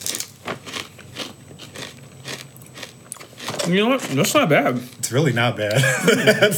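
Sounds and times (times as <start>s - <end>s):
biting into a crunchy pork rind: 0.0s - 4.4s
speech: 3.7s - 6.5s
laughter: 5.7s - 6.5s.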